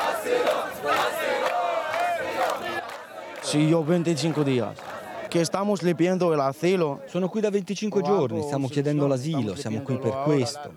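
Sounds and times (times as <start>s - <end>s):
crowd of protesting migrants shouting: 0.0s - 7.2s
speech: 0.3s - 1.3s, 3.5s - 10.7s.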